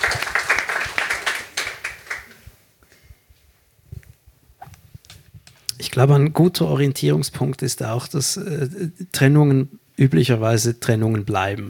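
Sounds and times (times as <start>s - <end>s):
audience applause: 0.0s - 2.4s
speech: 6.0s - 11.6s.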